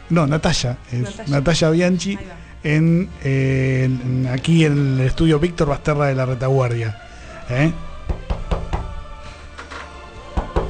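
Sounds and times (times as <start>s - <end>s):
speech: 0.1s - 7.9s
knocking on a door: 8.1s - 9.0s, 10.4s - 10.6s.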